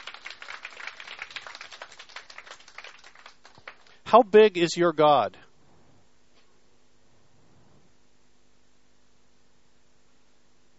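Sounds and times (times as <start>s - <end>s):
audience applause: 0.0s - 4.2s
speech: 4.1s - 5.4s.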